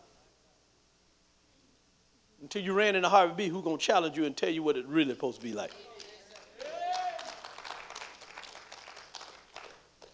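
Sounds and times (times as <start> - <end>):
speech: 2.4 - 6.0
audience clapping: 5.4 - 10.1.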